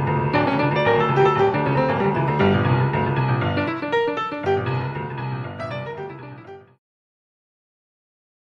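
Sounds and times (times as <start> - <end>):
boogie music: 0.0 - 6.8.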